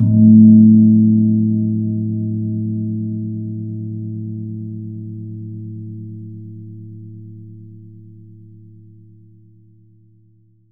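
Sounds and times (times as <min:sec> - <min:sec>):
gong: 0:00.0 - 0:06.8.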